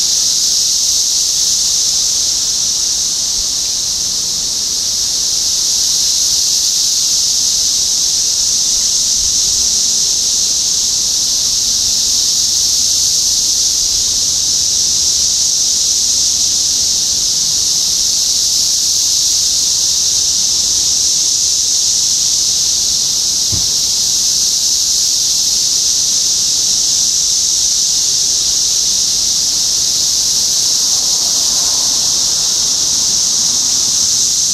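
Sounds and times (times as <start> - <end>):
cicadas droning: 0.0 - 34.5
soft knock: 23.5 - 23.9.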